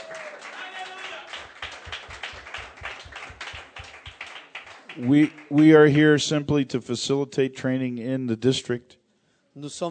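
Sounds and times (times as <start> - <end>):
audience clapping hands: 0.0 - 6.4
speech: 5.0 - 9.0, 9.6 - 9.8.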